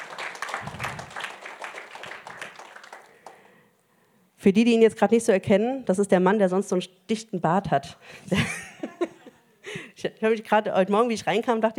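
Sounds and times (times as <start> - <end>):
audience applause: 0.0 - 3.4
speech: 4.4 - 9.1, 10.1 - 11.7.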